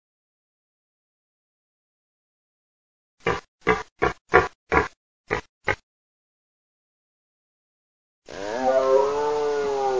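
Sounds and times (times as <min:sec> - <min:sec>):
red deer grunting barks: 0:03.2 - 0:05.8
red deer moaning bellow: 0:08.3 - 0:09.9.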